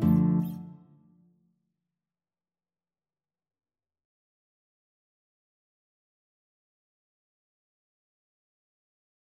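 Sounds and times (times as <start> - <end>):
guitar ensemble: 0.0 - 0.9.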